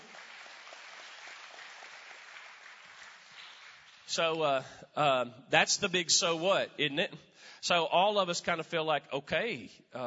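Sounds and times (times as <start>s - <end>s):
audience hand clapping: 0.0s - 4.4s
speech: 4.1s - 10.0s.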